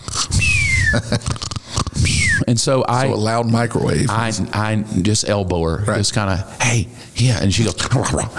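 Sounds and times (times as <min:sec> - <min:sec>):
imitated snoring: 0:00.0 - 0:02.4
speech: 0:00.9 - 0:01.4, 0:02.4 - 0:08.3.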